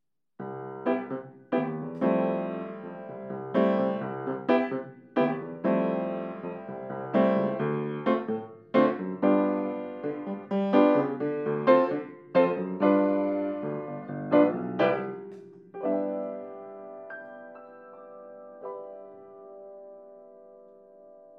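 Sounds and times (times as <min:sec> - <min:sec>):
piano: 0:00.4 - 0:21.3.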